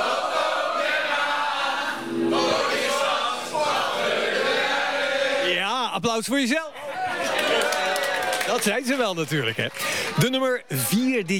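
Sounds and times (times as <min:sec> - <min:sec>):
packed crowd singing along loudly in a tent: 0:00.0 - 0:05.6
speech: 0:06.0 - 0:07.4, 0:08.5 - 0:11.3.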